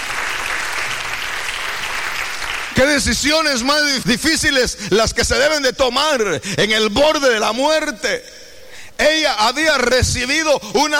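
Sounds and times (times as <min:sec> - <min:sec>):
church congregation applauding the pastor: 0:00.0 - 0:03.9
speech: 0:02.8 - 0:08.4, 0:09.0 - 0:10.9.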